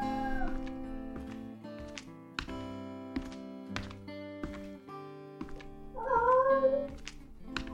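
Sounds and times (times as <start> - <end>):
music: 0.0 - 7.7
cat meowing: 6.0 - 6.9.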